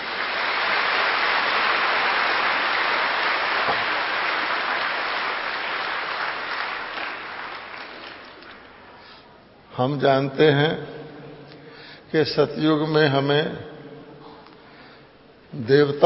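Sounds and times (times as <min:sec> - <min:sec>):
loud clapping applause: 0:00.0 - 0:08.8
speech: 0:09.8 - 0:11.0, 0:12.1 - 0:13.7, 0:15.6 - 0:16.0.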